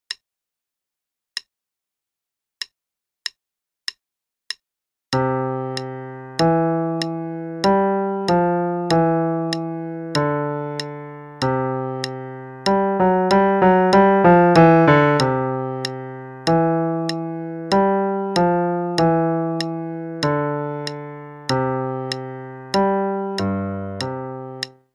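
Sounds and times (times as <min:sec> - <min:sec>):
left-hand part of a sonatina in C major: 0:05.1 - 0:24.8.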